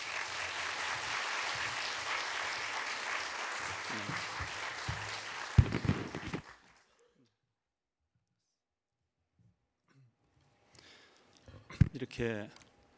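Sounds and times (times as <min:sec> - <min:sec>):
audience applause: 0:00.0 - 0:07.0
speech: 0:03.9 - 0:04.4, 0:12.0 - 0:12.6.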